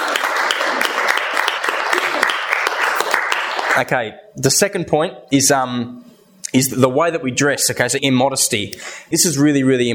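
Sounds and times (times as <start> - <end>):
audience applause: 0.0 - 3.8
speech: 3.8 - 9.9.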